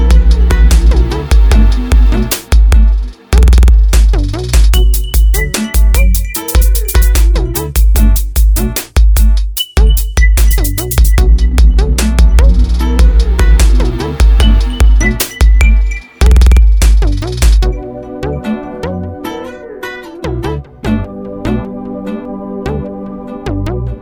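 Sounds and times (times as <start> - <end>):
music beat: 0.0 - 18.5.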